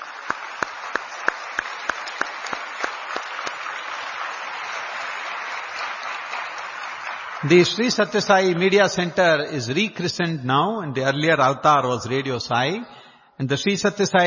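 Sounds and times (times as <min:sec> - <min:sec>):
audience applause: 0:00.0 - 0:08.9
sharp louder claps: 0:00.0 - 0:09.1
speech: 0:07.4 - 0:14.2.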